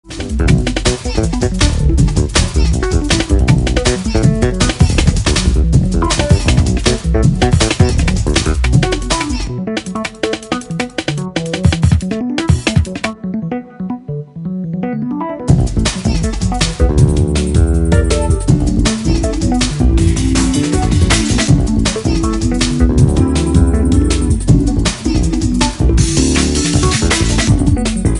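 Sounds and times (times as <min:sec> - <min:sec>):
drum and bass music: 0:00.0 - 0:13.7, 0:15.4 - 0:28.1.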